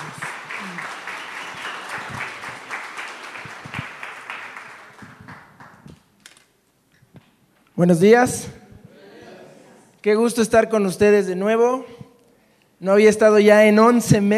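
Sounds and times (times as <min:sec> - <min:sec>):
audience applause: 0:00.0 - 0:06.1
speech: 0:07.8 - 0:08.6, 0:10.0 - 0:12.0, 0:12.8 - 0:14.3.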